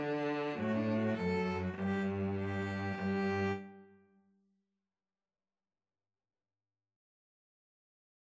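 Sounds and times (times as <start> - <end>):
two violins playing a polska: 0.0 - 3.9.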